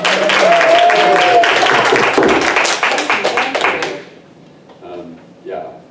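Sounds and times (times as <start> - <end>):
audience applause: 0.0 - 4.1.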